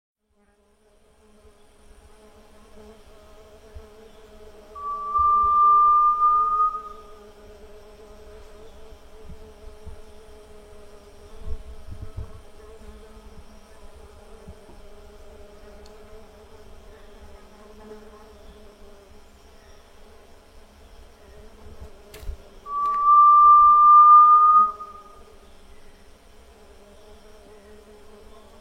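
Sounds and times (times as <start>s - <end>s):
grey-legged tinamou whistling a long pure note: 4.8s - 7.2s, 22.7s - 25.2s.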